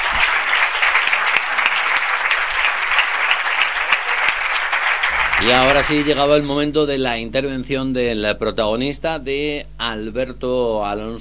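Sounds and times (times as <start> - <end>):
audience applause: 0.0 - 6.5
speech: 5.4 - 11.2.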